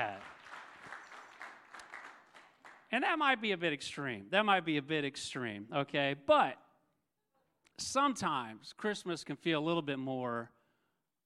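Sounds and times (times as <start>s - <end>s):
applause: 0.0s - 3.0s
speech: 2.9s - 6.6s, 7.8s - 10.6s.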